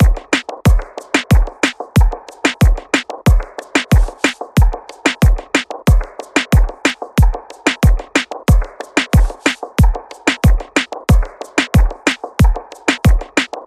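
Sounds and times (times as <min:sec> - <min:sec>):
Latin melody loop in D minor: 0:00.0 - 0:13.6
full drums: 0:00.0 - 0:13.6.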